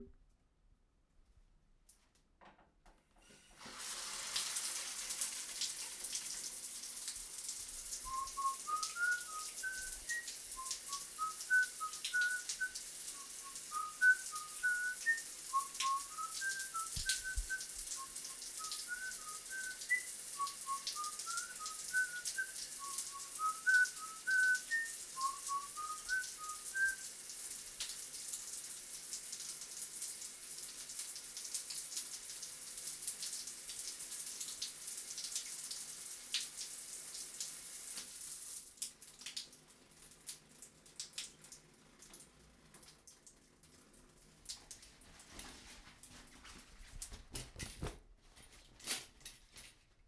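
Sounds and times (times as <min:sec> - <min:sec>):
person whistling in the shower: 0:08.1 - 0:27.0.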